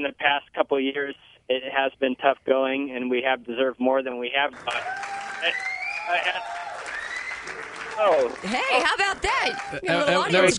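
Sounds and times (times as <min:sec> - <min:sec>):
speech: 0:00.0 - 0:10.5
applause: 0:04.5 - 0:10.0
people cheering and whooping: 0:04.6 - 0:10.0.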